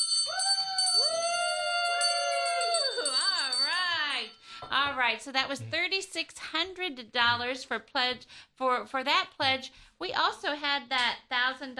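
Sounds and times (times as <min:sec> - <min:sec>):
bell ringing in celebration: 0:00.0 - 0:04.5
speech: 0:04.8 - 0:11.7.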